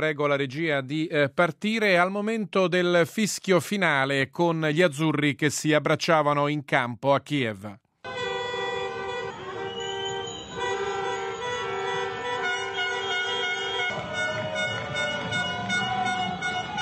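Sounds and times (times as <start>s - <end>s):
speech: 0.0s - 7.8s
car horns honking during a street celebration: 8.0s - 16.8s
street noise rumble: 8.1s - 16.8s.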